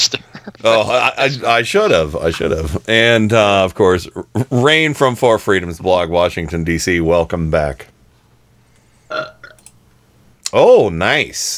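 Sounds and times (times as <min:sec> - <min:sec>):
speech: 0:00.6 - 0:07.9, 0:09.1 - 0:09.3, 0:10.5 - 0:11.5
burp: 0:09.1 - 0:09.7.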